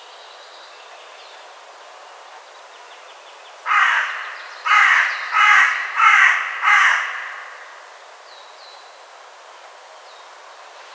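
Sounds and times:
carrion crow cawing: 3.7s - 8.0s.

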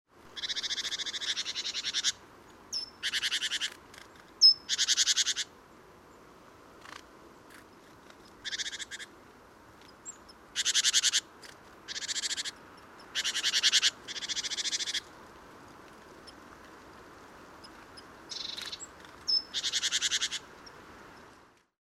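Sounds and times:
great tit scolding churr: 0.4s - 5.5s, 6.8s - 9.1s, 9.8s - 15.1s, 17.6s - 20.5s.

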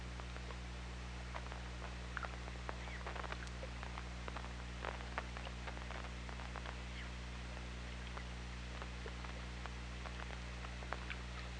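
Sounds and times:
low steady drone: 0.0s - 11.5s
killer whale clicks: 1.3s - 11.5s.

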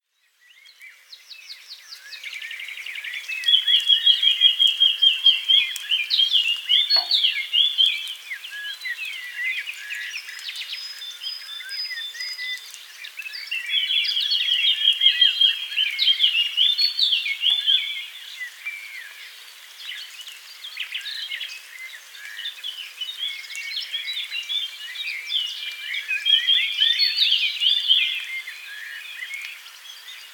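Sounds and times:
Eurasian blackcap warbling song: 0.4s - 30.3s
other birds chattering: 6.8s - 7.5s.

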